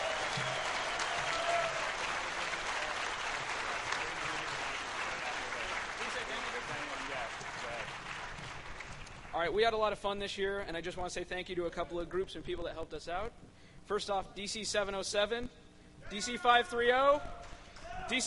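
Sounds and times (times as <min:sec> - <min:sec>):
crowd round of applause: 0:00.0 - 0:09.3
speech: 0:00.4 - 0:00.6, 0:09.4 - 0:17.5, 0:18.1 - 0:18.2.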